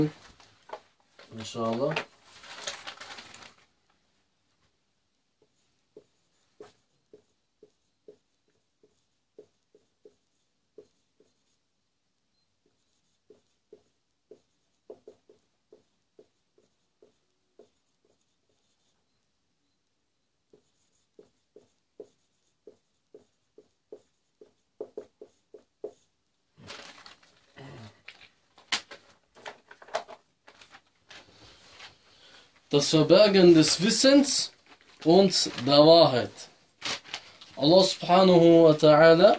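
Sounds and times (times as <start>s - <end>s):
speech: 0.0s - 0.2s, 1.3s - 2.1s, 32.7s - 36.5s, 37.6s - 39.3s
handwriting with a pen: 5.4s - 11.6s, 12.6s - 19.0s, 20.5s - 26.1s.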